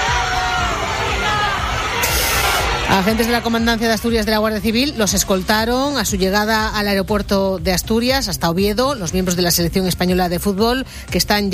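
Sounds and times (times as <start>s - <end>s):
football fans cheering and applauding at Asturias airport: 0.0s - 6.5s
speech: 3.0s - 11.5s.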